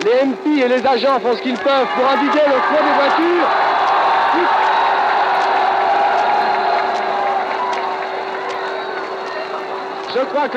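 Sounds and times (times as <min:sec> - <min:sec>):
speech: 0:00.1 - 0:03.7, 0:10.1 - 0:10.5
large crowd cheering and applauding: 0:00.9 - 0:10.5
whoops: 0:01.9 - 0:09.6.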